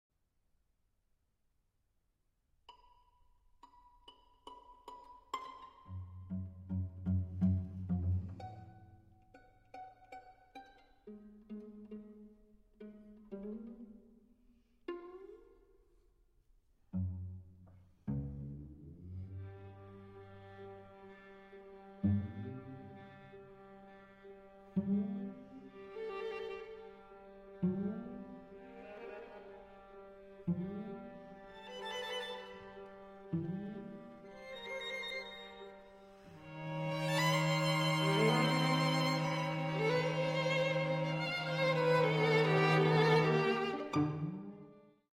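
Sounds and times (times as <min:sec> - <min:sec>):
string quartet playing an andante in B-flat: 0:05.3 - 0:14.1, 0:16.9 - 0:44.9.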